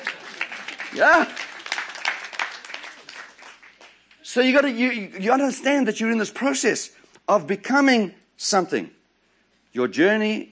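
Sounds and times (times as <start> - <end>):
audience applause: 0.0 - 5.0
speech: 0.9 - 1.4, 4.4 - 9.0, 9.8 - 10.5.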